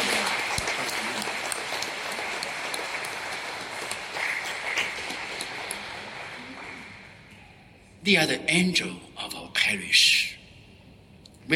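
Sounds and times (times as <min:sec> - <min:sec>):
audience applauding: 0:00.0 - 0:07.3
speech: 0:08.1 - 0:10.2.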